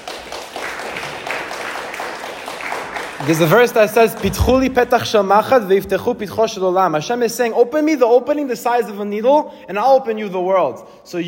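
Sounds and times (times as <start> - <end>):
audience applauding at a Torah class: 0.0 - 4.9
speech: 3.2 - 11.2.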